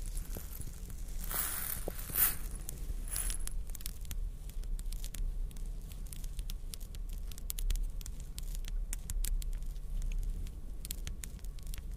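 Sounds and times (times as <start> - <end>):
bright rattling scrape: 0.0 - 3.5
crystals, beads and jewels tapped and scratched: 0.0 - 11.9
steady low rumble: 0.0 - 11.9.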